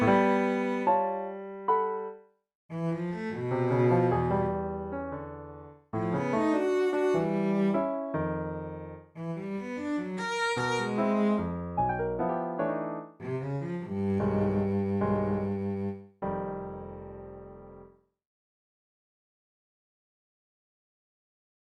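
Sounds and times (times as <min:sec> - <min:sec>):
cello: 0:00.0 - 0:02.0, 0:02.7 - 0:12.2, 0:13.2 - 0:17.0.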